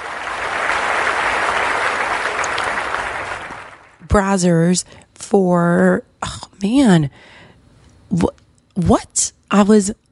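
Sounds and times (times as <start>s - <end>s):
crowd applause at an awards ceremony: 0.0s - 4.0s
speech: 4.1s - 7.4s, 8.1s - 10.0s.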